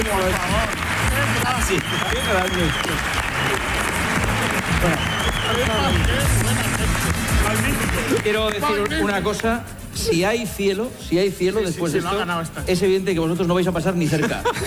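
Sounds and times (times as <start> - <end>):
audience applause: 0.0 - 9.4
speech: 0.1 - 3.8, 4.8 - 14.6
laughter: 14.0 - 14.6.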